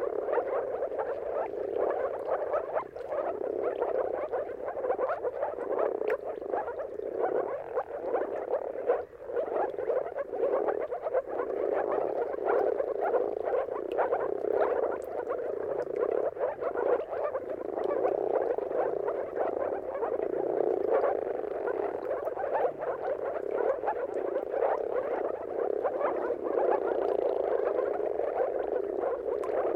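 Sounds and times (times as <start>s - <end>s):
moor frog mating chorus: 0.0s - 29.7s.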